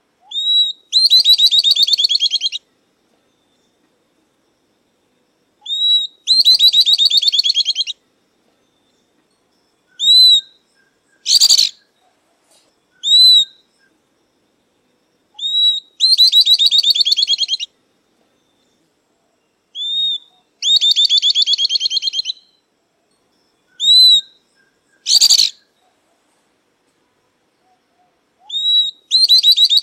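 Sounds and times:
southern beardless-tyrannulet song: 0.2 - 2.6, 5.6 - 8.0, 10.0 - 11.9, 13.0 - 13.6, 15.4 - 17.7, 19.8 - 22.6, 23.8 - 25.7, 28.4 - 29.8.

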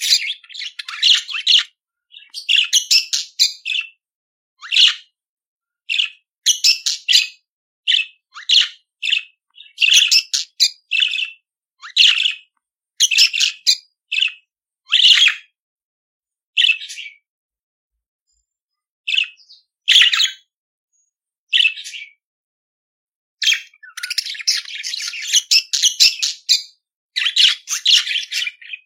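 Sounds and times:
budgerigar chattering song with squeaky chirps and buzzing warbles: 0.0 - 4.0, 4.6 - 5.1, 5.9 - 15.5, 16.6 - 17.2, 21.5 - 22.2, 23.4 - 28.8.

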